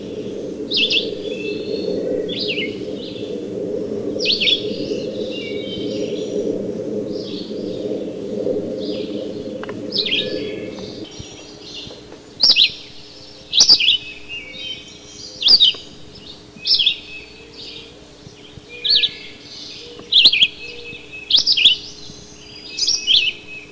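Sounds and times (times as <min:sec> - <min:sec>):
red-eyed vireo song of short slurred whistled phrases: 0:00.0 - 0:23.7.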